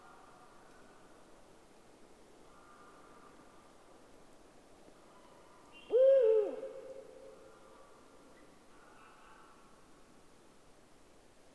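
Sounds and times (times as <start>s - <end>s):
Eurasian eagle-owl hooting: 5.9s - 6.9s.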